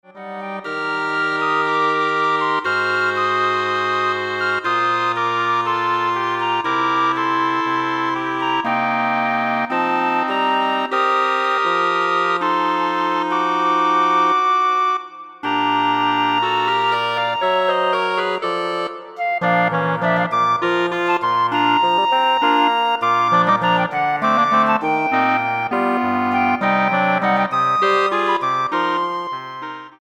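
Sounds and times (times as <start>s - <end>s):
woodwind ensemble: 0.0s - 29.9s.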